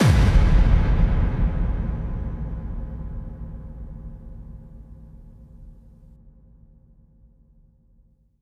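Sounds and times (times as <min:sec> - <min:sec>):
bass drum kick with reverb: 0:00.0 - 0:05.9.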